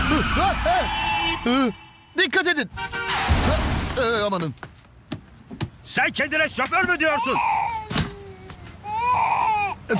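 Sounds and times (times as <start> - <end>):
speech: 0.1 - 4.7, 5.9 - 7.5
person crying: 7.1 - 9.9.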